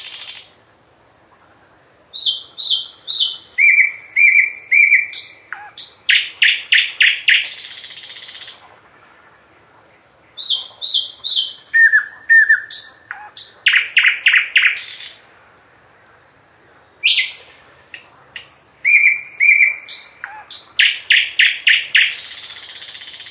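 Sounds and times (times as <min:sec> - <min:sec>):
nightingale singing: 0:00.0 - 0:00.8, 0:01.6 - 0:08.6, 0:09.9 - 0:23.2.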